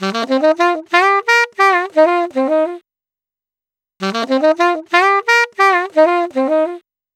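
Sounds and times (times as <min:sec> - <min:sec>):
saxophone in E-flat: 0:00.0 - 0:02.8, 0:04.0 - 0:06.9.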